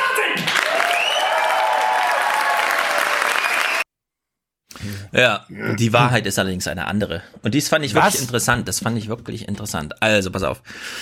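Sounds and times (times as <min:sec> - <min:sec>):
studio audience applauding: 0:00.1 - 0:03.8
speech: 0:05.1 - 0:10.9.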